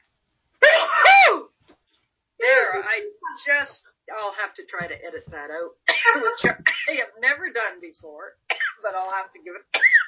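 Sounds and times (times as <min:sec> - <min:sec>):
sneeze: 0:00.6 - 0:01.5, 0:09.8 - 0:10.0
speech: 0:02.9 - 0:09.9.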